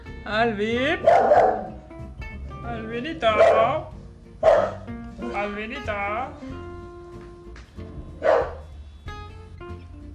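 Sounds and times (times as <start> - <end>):
speech: 0.2 - 1.8, 2.6 - 6.6
dog barking: 1.0 - 1.8, 3.3 - 4.9, 8.2 - 8.7.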